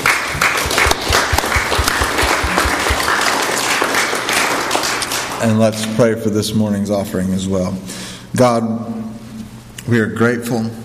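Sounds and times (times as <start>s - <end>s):
audience applause: 0.0s - 5.4s
speech: 5.4s - 9.0s, 9.8s - 10.8s.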